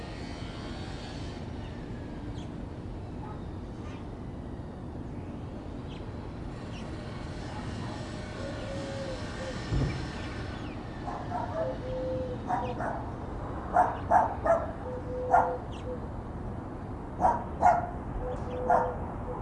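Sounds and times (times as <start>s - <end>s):
birds: 5.3s - 16.1s, 16.8s - 19.4s
dogs: 11.0s - 11.8s, 12.4s - 13.1s, 13.7s - 15.7s, 17.2s - 19.4s.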